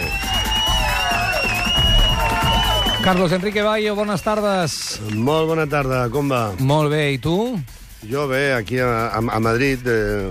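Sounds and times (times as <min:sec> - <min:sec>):
audience cheering greeting a guest on a live show: 0:00.0 - 0:06.6
whistle-like tones: 0:00.0 - 0:06.6
speech: 0:03.0 - 0:10.2.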